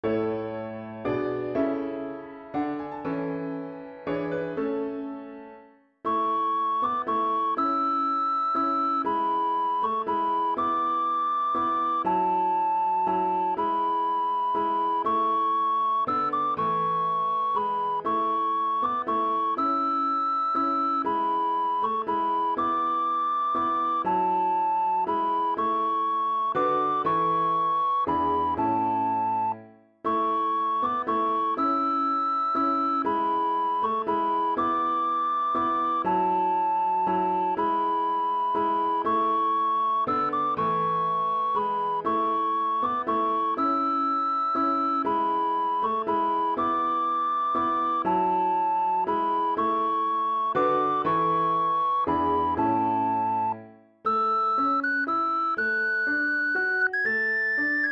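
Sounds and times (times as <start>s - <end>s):
piano: 0.0s - 57.8s.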